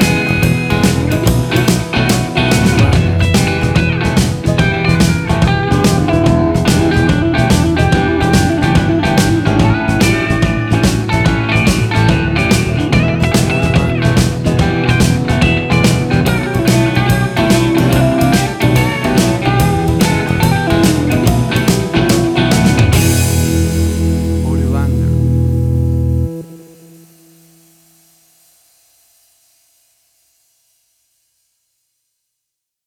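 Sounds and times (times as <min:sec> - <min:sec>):
blues shuffle country music: 0:00.0 - 0:26.8.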